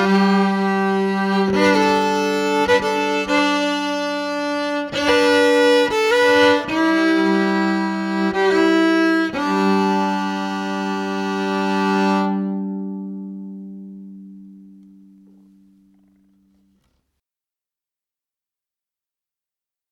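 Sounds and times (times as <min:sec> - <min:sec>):
electric fiddle: 0:00.0 - 0:15.5.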